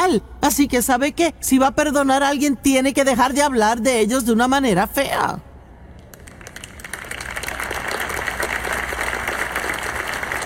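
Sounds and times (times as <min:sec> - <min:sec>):
speech: 0:00.1 - 0:05.5
applause from audience: 0:06.2 - 0:10.4.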